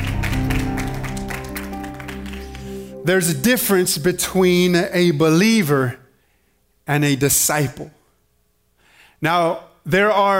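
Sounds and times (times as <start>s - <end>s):
crowd clapping in steady rhythmic applause: 0.0s - 3.5s
sustained organ-like musical tones: 0.0s - 5.7s
speech: 3.0s - 6.0s, 6.9s - 8.0s, 9.2s - 10.3s.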